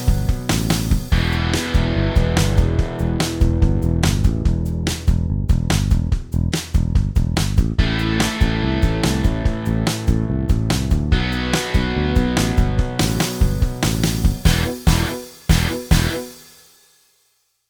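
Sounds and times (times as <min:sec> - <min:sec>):
backing track music: 0:00.0 - 0:16.6.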